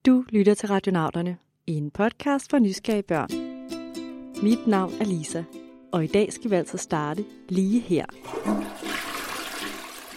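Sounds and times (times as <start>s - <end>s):
speech: 0.3s - 3.4s, 4.4s - 8.9s
toilet flushing: 8.2s - 10.1s.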